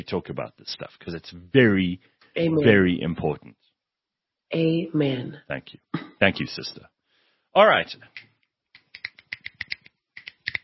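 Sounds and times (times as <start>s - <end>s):
speech: 0.0s - 3.6s, 4.5s - 7.0s, 7.6s - 8.3s
fingers snapping: 8.2s - 10.6s.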